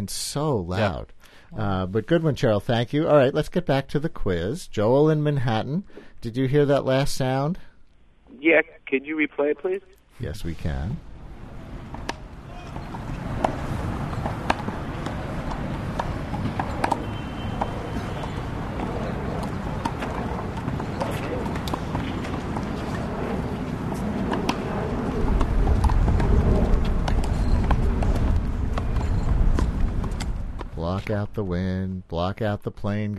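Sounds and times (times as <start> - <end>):
speech: 0.0 - 7.7, 8.3 - 11.1, 31.1 - 33.1
handball court ambience: 11.8 - 30.8.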